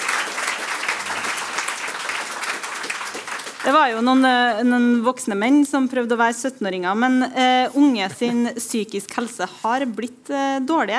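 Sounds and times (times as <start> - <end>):
crowd applauding: 0.0 - 4.3
speech: 3.6 - 10.9.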